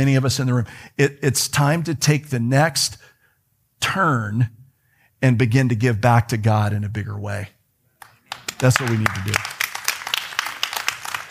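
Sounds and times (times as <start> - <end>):
speech: 0.0 - 3.1, 3.8 - 4.6, 5.2 - 7.6, 8.6 - 9.6
golf clap: 8.0 - 11.3.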